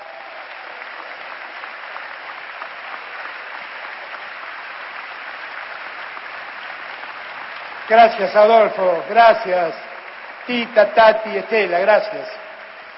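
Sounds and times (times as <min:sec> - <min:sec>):
audience applause: 0:00.0 - 0:12.9
speech: 0:07.9 - 0:09.8, 0:10.4 - 0:12.4.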